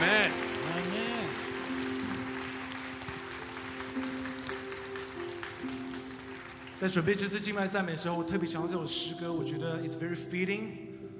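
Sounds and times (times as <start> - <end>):
crowd clapping: 0.0 - 8.3
speech: 6.8 - 10.9.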